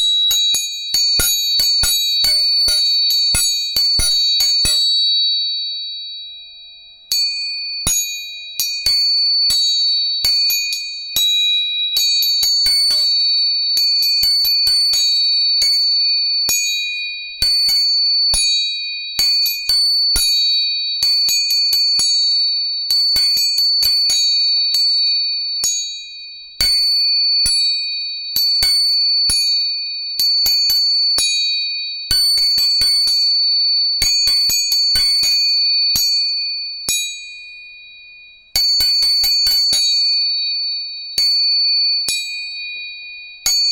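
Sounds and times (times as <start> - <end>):
three tuning forks struck and ringing: 0.0 - 43.6.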